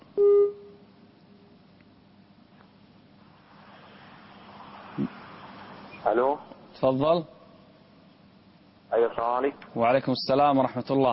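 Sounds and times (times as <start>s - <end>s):
electronic tone as a phone call drops out: 0.2s - 0.8s
faint phone line hiss: 3.2s - 6.4s
speech: 6.0s - 7.4s, 9.0s - 11.1s.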